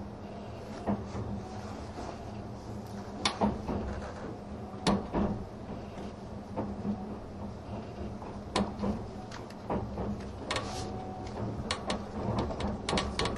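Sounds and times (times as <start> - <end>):
Spacia X limited express train running rumble: 0.0 - 13.3.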